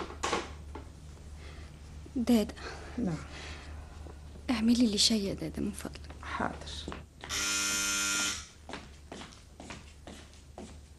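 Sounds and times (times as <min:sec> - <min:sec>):
speech: 0:02.2 - 0:03.6, 0:04.5 - 0:07.4
loud steady electric doorbell buzzing: 0:07.3 - 0:08.5
soft evenly spaced footsteps: 0:08.6 - 0:10.9.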